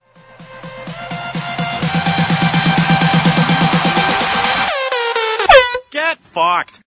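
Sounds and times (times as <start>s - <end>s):
bass drop: 0.4s - 5.8s.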